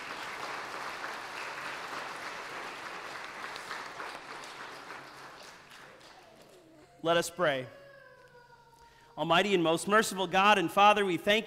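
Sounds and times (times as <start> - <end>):
audience applause: 0.0 - 6.7
speech: 7.0 - 7.8, 9.2 - 11.4.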